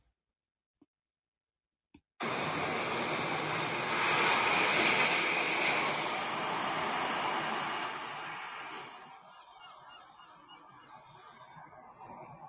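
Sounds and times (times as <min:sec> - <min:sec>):
ocean waves: 0:02.4 - 0:09.5.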